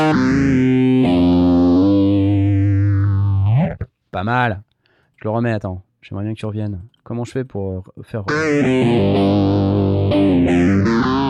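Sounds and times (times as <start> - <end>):
electric guitar played through a phaser pedal: 0.0 - 3.6, 8.3 - 11.2
speech: 4.2 - 11.2.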